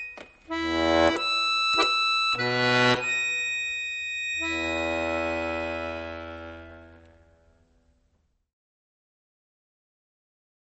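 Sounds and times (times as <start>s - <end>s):
waltz music: 0.0s - 7.6s.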